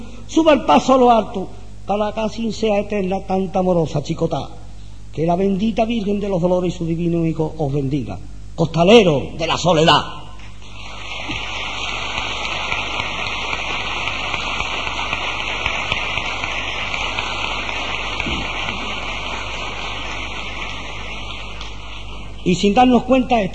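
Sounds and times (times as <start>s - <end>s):
speech: 0.3s - 4.6s, 5.2s - 10.2s, 22.5s - 23.5s
crowd applause in plaza de San Gregorio: 10.6s - 22.4s.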